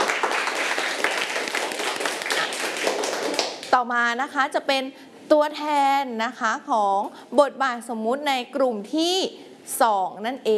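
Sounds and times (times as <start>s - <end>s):
crowd applauding for a group: 0.0s - 3.7s
speech: 3.8s - 10.5s.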